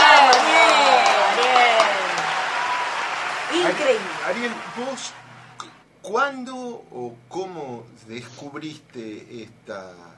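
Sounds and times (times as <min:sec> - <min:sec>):
audience applause: 0:00.0 - 0:05.6
speech: 0:04.3 - 0:05.3, 0:06.0 - 0:10.1.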